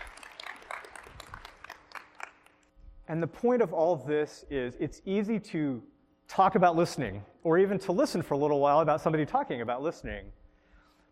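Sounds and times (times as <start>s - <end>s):
audience applause: 0.0s - 2.6s
speech: 3.1s - 10.4s.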